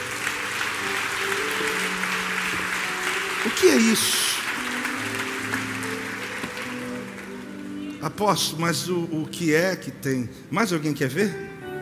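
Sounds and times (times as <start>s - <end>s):
audience applause: 0.0s - 8.2s
speech: 3.6s - 4.3s, 8.0s - 11.5s.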